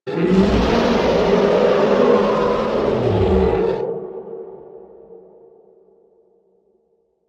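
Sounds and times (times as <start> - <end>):
roar: 0.0 - 4.3.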